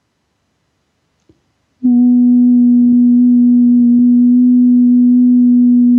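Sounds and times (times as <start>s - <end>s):
sine-like test tone: 1.8s - 5.9s.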